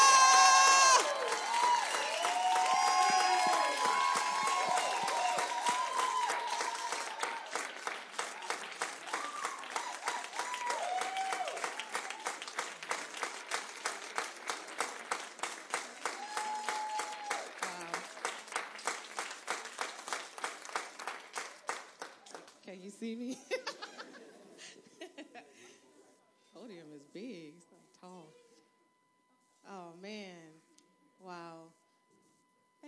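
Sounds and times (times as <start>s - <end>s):
audience applause: 0.0s - 22.5s.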